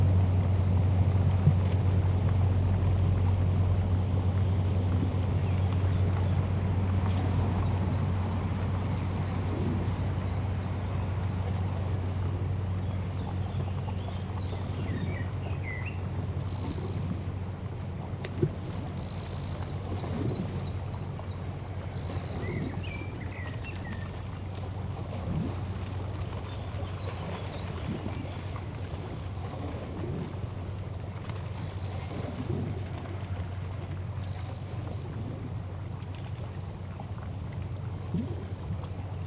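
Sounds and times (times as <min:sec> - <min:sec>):
motor ship in a canal: 0:00.0 - 0:39.2.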